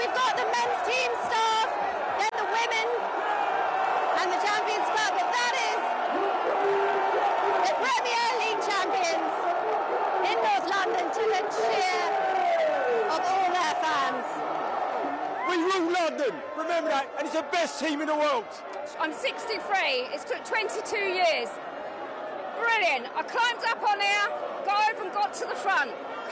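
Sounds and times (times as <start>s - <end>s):
Arsenal fans roaring at the team bus during a trophy parade: 0.0s - 26.3s
fans whooping and shouting: 2.4s - 13.3s
speech: 17.0s - 21.8s, 22.6s - 26.3s.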